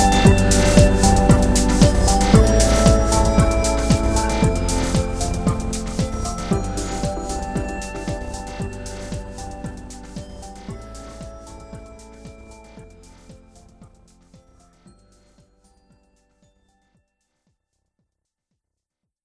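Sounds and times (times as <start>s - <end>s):
hi tech lounge music: 0.0s - 15.4s.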